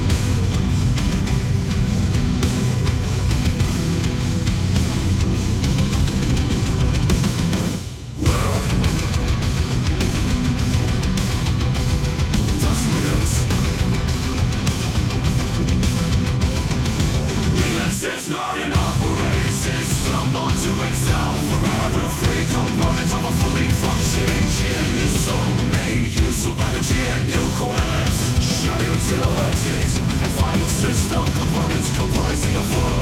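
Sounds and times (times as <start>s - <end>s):
metal music: 0.0s - 33.0s.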